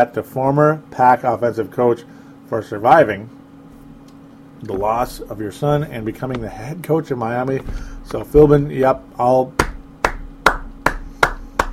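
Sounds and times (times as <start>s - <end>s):
speech: 0.0s - 3.4s, 4.6s - 9.6s
one person clapping slowly and deliberately: 9.6s - 11.7s.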